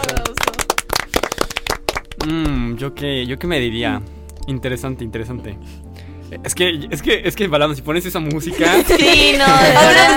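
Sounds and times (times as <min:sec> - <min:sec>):
applause: 0:00.0 - 0:02.5
speech: 0:02.2 - 0:10.1
laughter: 0:08.4 - 0:10.1.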